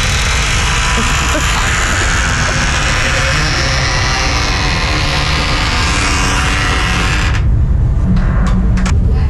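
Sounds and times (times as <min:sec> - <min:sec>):
very loud creaking door being opened: 0:00.0 - 0:09.1
laughter: 0:00.9 - 0:04.4.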